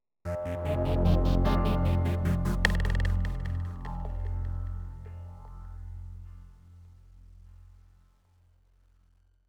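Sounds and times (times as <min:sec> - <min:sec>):
synth one-shot: 0:00.3 - 0:05.2.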